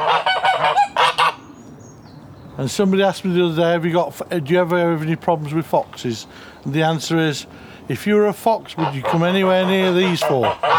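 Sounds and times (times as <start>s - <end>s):
domestic geese honking: 0.0s - 1.4s, 8.7s - 10.7s
speech: 2.6s - 10.7s.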